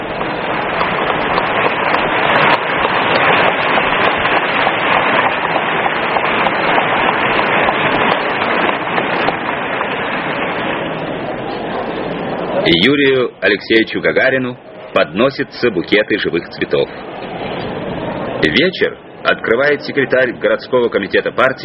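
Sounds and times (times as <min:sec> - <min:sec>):
large crowd applauding: 0:00.0 - 0:12.7
speech: 0:12.7 - 0:17.1, 0:18.4 - 0:21.6.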